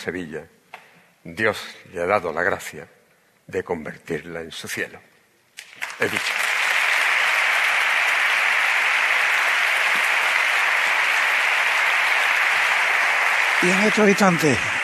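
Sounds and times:
speech: 0:00.0 - 0:00.6, 0:01.2 - 0:05.1, 0:06.0 - 0:06.4, 0:13.6 - 0:14.8
strong ovation, audience applause: 0:05.6 - 0:14.8.

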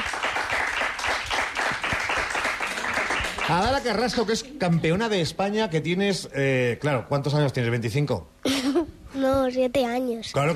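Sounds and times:
audience applause: 0:00.0 - 0:04.3
speech: 0:03.5 - 0:10.5.

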